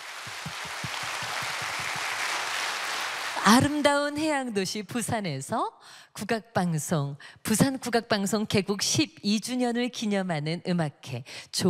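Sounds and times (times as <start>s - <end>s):
audience applause: 0.0s - 3.7s
speech: 3.4s - 11.6s.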